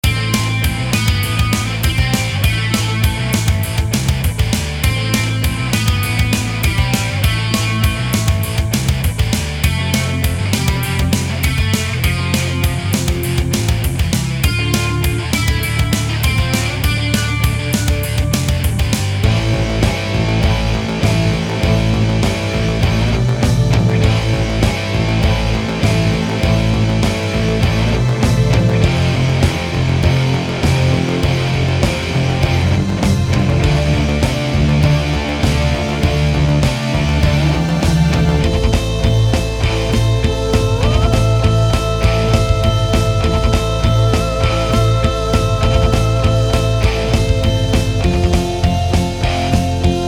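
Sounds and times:
metal music: 0.0s - 50.0s.

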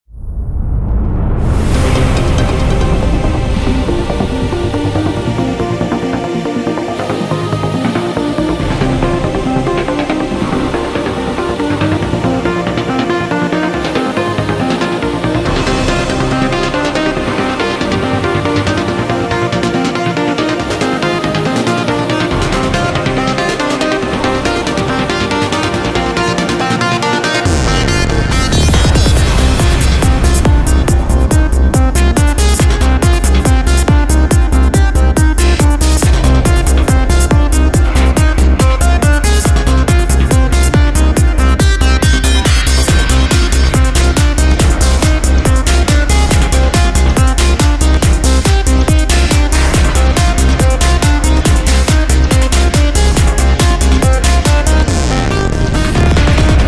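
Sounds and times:
techno music: 1.4s - 56.6s.

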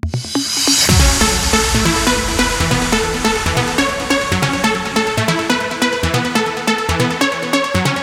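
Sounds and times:
trance music: 0.1s - 8.0s.

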